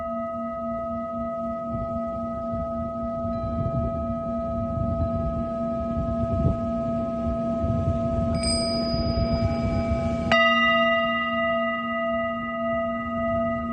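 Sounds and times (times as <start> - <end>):
singing bowl sound healing from Mexico: 0.0 - 13.7.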